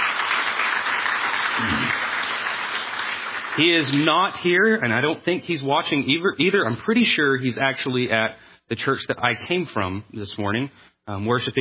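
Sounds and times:
audience applauding: 0.0 - 4.8
speech: 3.6 - 11.6.

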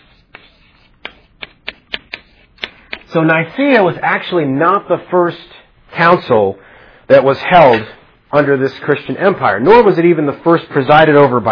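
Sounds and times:
writing on a board: 0.0 - 3.1
speech: 3.1 - 11.5.

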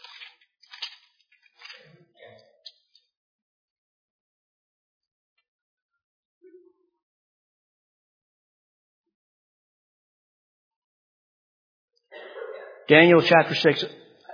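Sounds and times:
Bible pages turning: 0.0 - 2.0
speech: 12.9 - 14.0.

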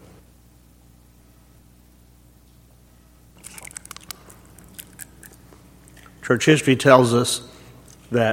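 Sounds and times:
church congregation peeling open communion cups for the Lord's Supper: 3.4 - 6.2
speech: 6.3 - 7.5, 8.1 - 8.3.

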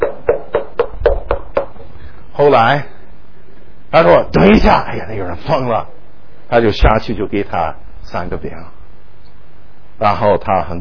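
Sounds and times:
knocking on a wooden door: 0.0 - 1.8
speech: 2.4 - 2.9, 3.9 - 8.8, 10.0 - 10.8.

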